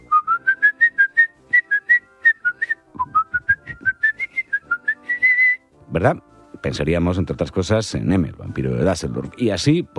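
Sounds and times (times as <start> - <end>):
person whistling a film melody: 0.0 - 5.7
speech: 6.0 - 9.9.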